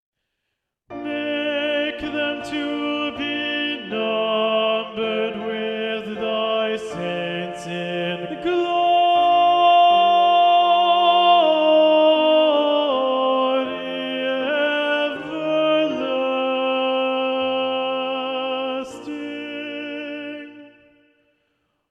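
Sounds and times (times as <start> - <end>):
tenor singing: 0.9 - 21.3.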